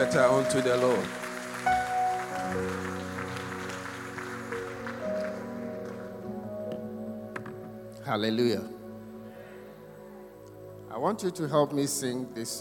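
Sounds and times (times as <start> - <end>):
speech: 0.0 - 1.9, 2.5 - 2.9, 8.1 - 8.8, 11.0 - 12.6
audience applause: 0.0 - 6.3.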